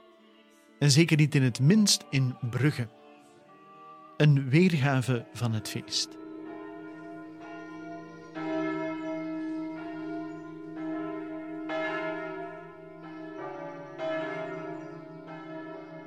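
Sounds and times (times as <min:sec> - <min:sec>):
speech: 0:00.8 - 0:03.0, 0:04.2 - 0:06.2
heavy church bells ringing: 0:04.6 - 0:16.0.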